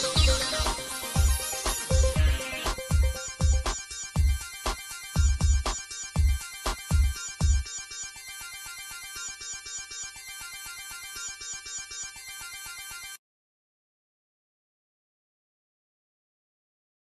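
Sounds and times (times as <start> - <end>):
game music: 0.0 - 13.2.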